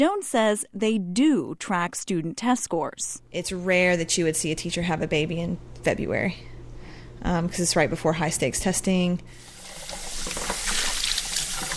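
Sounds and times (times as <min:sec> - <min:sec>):
speech: 0:00.0 - 0:06.5, 0:07.2 - 0:10.4
running water at a kitchen sink: 0:09.4 - 0:11.7
baby bottles scrubbed, rubbing and rattling: 0:09.7 - 0:11.7.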